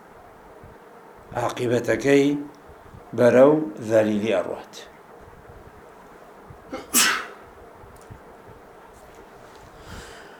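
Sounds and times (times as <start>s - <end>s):
hiss: 0.0s - 10.3s
speech: 1.3s - 4.9s
person sneezing: 6.7s - 7.4s.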